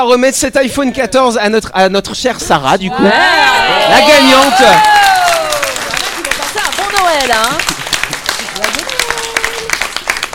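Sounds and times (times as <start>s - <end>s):
speech: 0.0s - 4.9s, 6.9s - 7.7s
audience applause: 3.4s - 10.3s
laughter: 7.6s - 9.6s.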